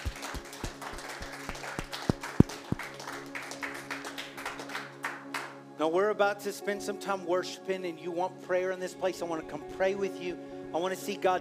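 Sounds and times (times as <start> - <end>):
audience clapping hands: 0.0 - 5.6
speech: 5.8 - 11.3.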